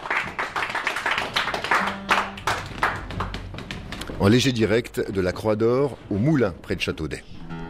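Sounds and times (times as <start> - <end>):
audience clapping: 0.0 - 4.2
speech: 4.2 - 7.4.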